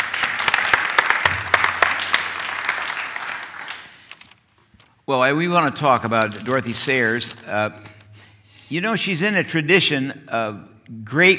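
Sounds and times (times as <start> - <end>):
audience applause: 0.0 - 4.2
speech: 5.1 - 7.9, 8.7 - 11.3.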